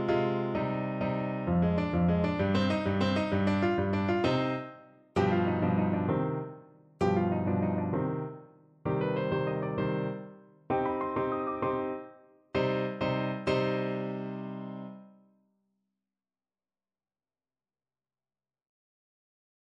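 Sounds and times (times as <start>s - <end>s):
clarinet and piano: 0.0s - 15.1s.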